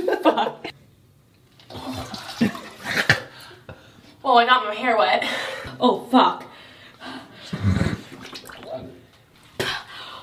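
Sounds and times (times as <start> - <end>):
water splashing and sloshing as someone dips into an ice bath: 1.5 - 3.3, 8.0 - 9.0
speech: 4.3 - 6.4.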